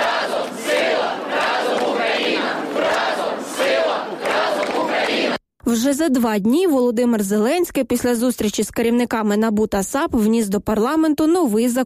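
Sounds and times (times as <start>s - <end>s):
large protest crowd chanting: 0.0s - 5.4s
speech: 5.7s - 11.8s.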